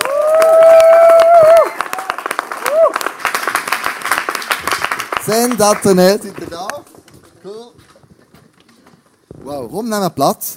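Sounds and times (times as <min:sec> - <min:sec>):
audience applause: 0:00.0 - 0:07.0
speech: 0:05.6 - 0:06.4, 0:09.6 - 0:10.5.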